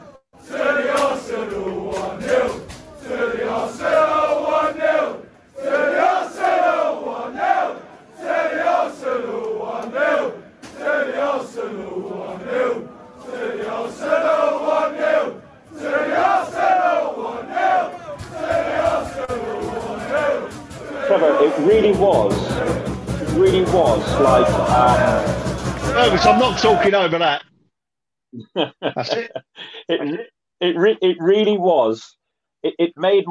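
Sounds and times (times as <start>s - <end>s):
large crowd of football fans chanting in unison: 0.0s - 26.9s
laughter: 23.3s - 26.9s, 28.4s - 30.3s
speech: 26.4s - 27.5s, 28.6s - 29.4s, 30.0s - 33.2s.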